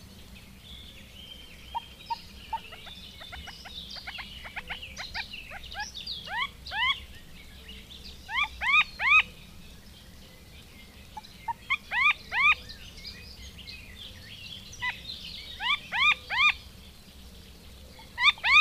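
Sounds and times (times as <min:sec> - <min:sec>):
common moorhen calls: 0:01.7 - 0:07.1, 0:08.3 - 0:09.3, 0:11.2 - 0:12.6, 0:14.8 - 0:16.7, 0:18.0 - 0:18.5.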